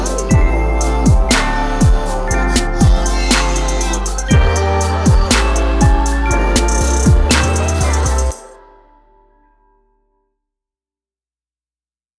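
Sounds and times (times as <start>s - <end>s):
instrumental music: 0.0s - 9.6s.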